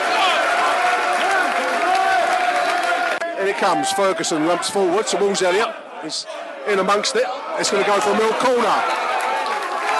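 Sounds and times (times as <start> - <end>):
stadium crowd applause: 0.0 - 5.0, 7.6 - 9.9
speech: 3.6 - 9.1.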